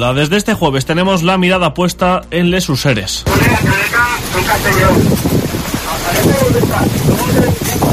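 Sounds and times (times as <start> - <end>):
speech: 0.0 - 7.9
strong wind gusts during night firefighting at the Les Useres forest fire: 3.2 - 7.9.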